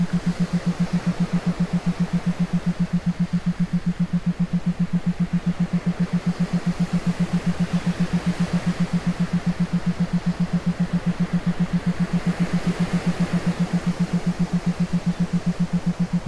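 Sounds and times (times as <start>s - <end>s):
isochronic waves: 0.0s - 16.2s
theta binaural beats: 0.0s - 16.2s.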